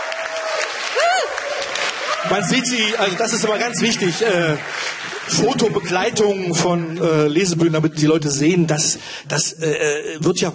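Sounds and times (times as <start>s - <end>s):
swooping vocal whoop: 0.0s - 2.3s
crowd clapping at a literary reading stage in a courtyard: 0.0s - 8.5s
speech: 2.2s - 10.5s.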